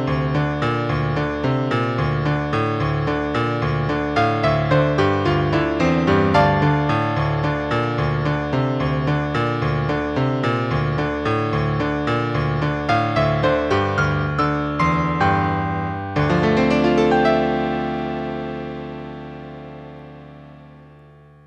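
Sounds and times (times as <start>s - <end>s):
piano: 0.0s - 21.4s.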